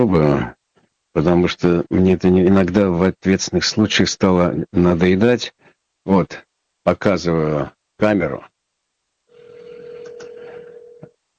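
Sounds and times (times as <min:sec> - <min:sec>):
speech: 0:00.0 - 0:00.6, 0:01.2 - 0:08.5
telephone tone on a call to a studio number: 0:09.4 - 0:11.1.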